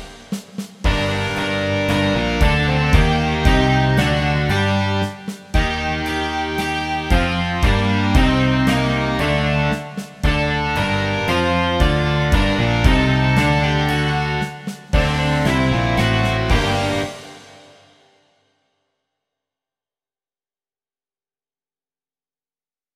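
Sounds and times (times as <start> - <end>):
rock music: 0.0 - 17.9.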